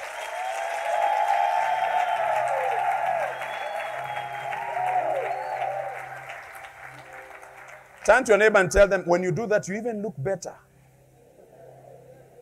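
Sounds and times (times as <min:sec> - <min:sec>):
audience applause: 0:00.0 - 0:08.9
speech: 0:08.1 - 0:10.7.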